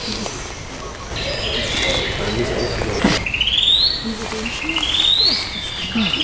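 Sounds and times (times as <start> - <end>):
faint other birds: 0.0 - 6.2
laughter: 0.0 - 6.2
pigeon-like coo: 0.0 - 6.2
song thrush singing outdoors: 0.0 - 6.2.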